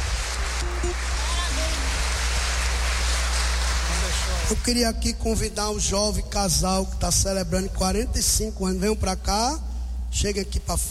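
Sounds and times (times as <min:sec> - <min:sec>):
crowd applauding: 0:00.0 - 0:04.8
speech: 0:04.5 - 0:10.8.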